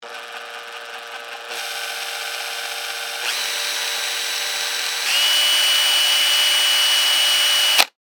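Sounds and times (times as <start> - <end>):
cordless drill dry burst from slow to fast: 0.0 - 7.9.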